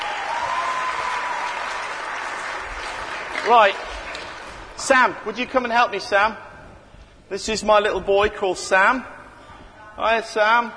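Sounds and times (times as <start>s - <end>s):
round of applause: 0.0s - 4.6s
speech: 3.4s - 3.9s, 4.8s - 6.5s, 7.3s - 9.1s, 10.0s - 10.7s.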